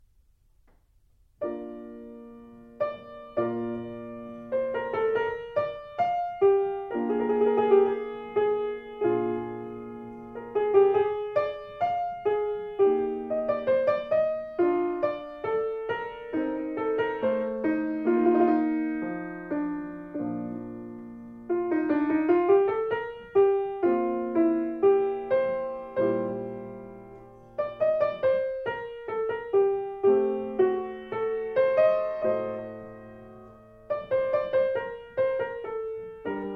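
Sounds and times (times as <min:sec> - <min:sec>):
classical piece: 0:00.0 - 0:36.5.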